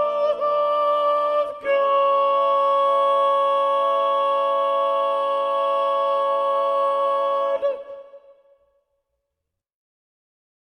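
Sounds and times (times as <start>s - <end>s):
second soprano singing predominant: 0.0s - 8.4s.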